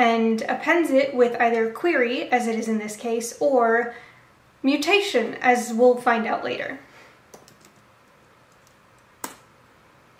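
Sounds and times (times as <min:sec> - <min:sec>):
speech: 0:00.0 - 0:06.9
computer keyboard typing: 0:07.3 - 0:07.8.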